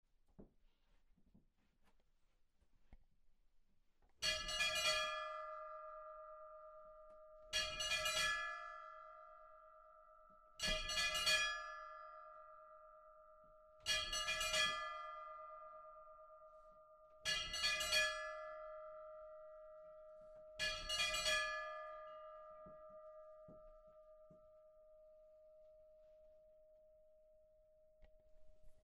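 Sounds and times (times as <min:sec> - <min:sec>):
church bells at Hjarðarholtskirkja before mass: 0:04.2 - 0:09.8, 0:10.6 - 0:25.2.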